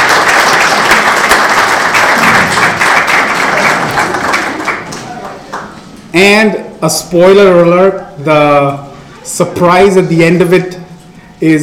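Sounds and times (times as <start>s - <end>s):
audience applause: 0.0s - 5.8s
speech: 6.2s - 10.8s, 11.4s - 11.6s.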